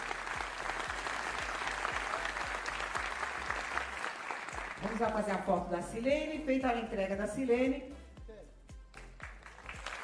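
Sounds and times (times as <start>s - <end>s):
audience applause: 0.0s - 5.5s, 9.2s - 10.0s
speech: 5.0s - 8.0s.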